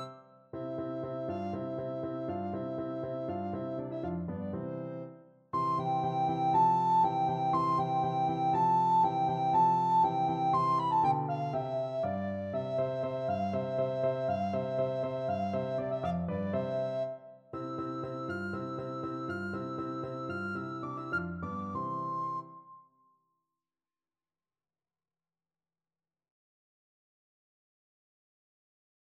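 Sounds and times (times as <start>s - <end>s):
recorder playing classical piece: 0.0s - 22.6s.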